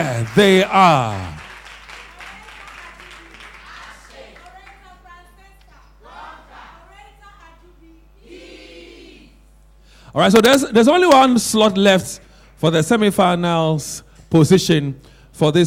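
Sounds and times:
speech: 0:00.0 - 0:01.4, 0:10.1 - 0:15.6
audience applause at a school debate competition: 0:00.0 - 0:04.9.

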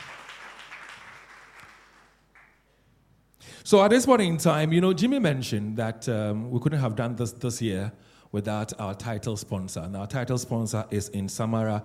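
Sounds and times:
audience applause: 0:00.0 - 0:02.6
speech: 0:03.6 - 0:11.8.

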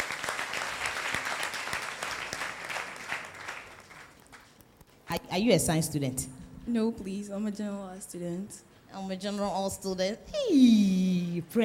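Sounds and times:
audience clapping: 0:00.0 - 0:04.9
speech: 0:05.1 - 0:11.6.

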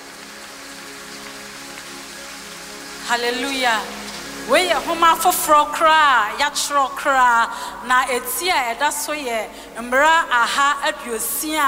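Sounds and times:
audience clapping: 0:00.0 - 0:04.5
speech: 0:03.1 - 0:11.6.

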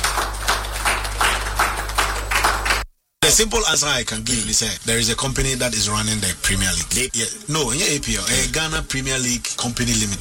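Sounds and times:
audience clapping: 0:00.0 - 0:02.9
speech: 0:03.4 - 0:10.1.

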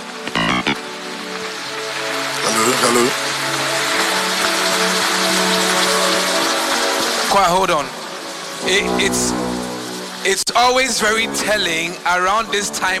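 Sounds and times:
sustained musical tones: 0:00.0 - 0:01.2, 0:08.0 - 0:11.8
audience clapping: 0:00.0 - 0:10.3
speech: 0:07.4 - 0:08.0, 0:08.6 - 0:09.5, 0:10.2 - 0:12.9.

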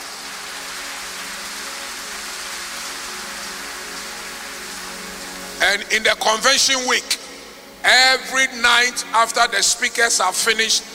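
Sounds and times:
audience clapping: 0:00.0 - 0:05.6
speech: 0:05.6 - 0:07.2, 0:07.8 - 0:10.9.

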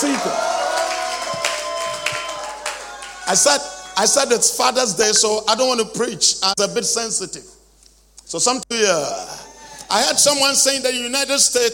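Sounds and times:
audience clapping hands: 0:00.0 - 0:04.1
speech: 0:03.3 - 0:07.6, 0:08.3 - 0:11.7.

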